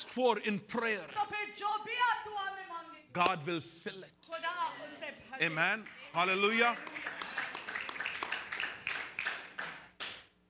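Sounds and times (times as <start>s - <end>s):
speech: 0.2s - 7.1s
a few scattered claps: 5.8s - 10.3s.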